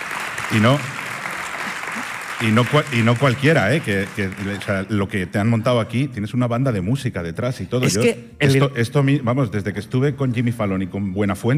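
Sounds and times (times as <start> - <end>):
audience applause: 0.0 - 5.3
speech: 0.5 - 1.0, 2.4 - 11.5.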